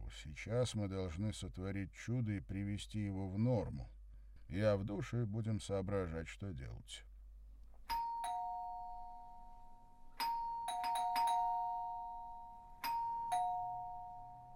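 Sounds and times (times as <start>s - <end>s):
speech: 0.1s - 7.1s
persistent two-tone doorbell chime: 7.9s - 14.5s.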